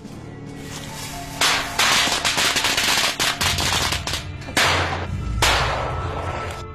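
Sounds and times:
string of firecrackers going off by a lake: 1.3s - 6.2s.

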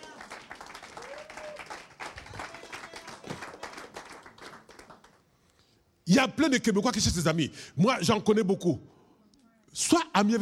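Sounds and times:
church congregation applauding during a sermon in Québec: 0.0s - 5.3s
speech: 6.1s - 8.9s, 9.8s - 10.4s.

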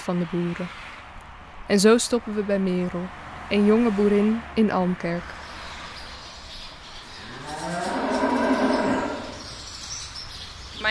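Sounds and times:
speech: 0.0s - 0.9s, 1.7s - 5.4s
dairy cow mooing in a cowshed: 7.2s - 9.5s.

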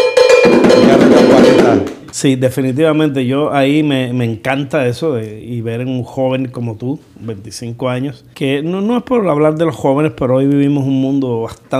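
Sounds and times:
bell rung as a sound effect: 0.0s - 1.9s
speech: 2.2s - 11.7s.

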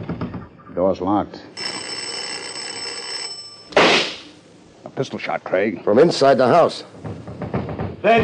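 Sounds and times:
speech: 0.8s - 1.7s, 5.0s - 7.3s, 8.0s - 8.2s
bell ringing: 1.6s - 3.8s.

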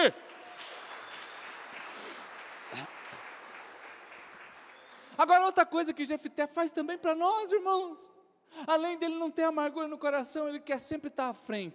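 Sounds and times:
speech: 0.0s - 0.2s, 5.2s - 11.7s
audience applause: 0.0s - 5.2s.

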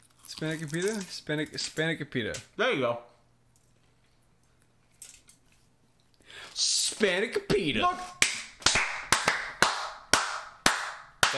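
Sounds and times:
speech: 0.4s - 3.1s, 6.6s - 8.2s
hand clapping: 8.2s - 11.3s.

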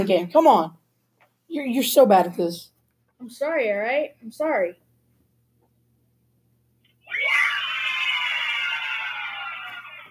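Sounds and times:
speech: 0.0s - 0.8s, 1.5s - 4.8s
crowd cheering: 7.0s - 10.0s.

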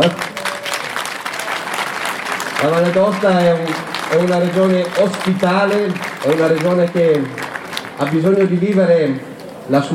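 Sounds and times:
speech: 0.0s - 0.3s, 2.6s - 7.4s, 8.0s - 9.9s
crowd clapping in a town square: 0.0s - 9.5s.

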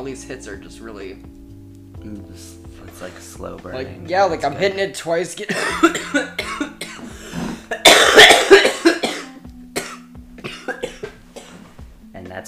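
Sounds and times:
speech: 0.0s - 1.4s, 2.0s - 6.7s
man coughing after smoking: 5.5s - 11.6s.

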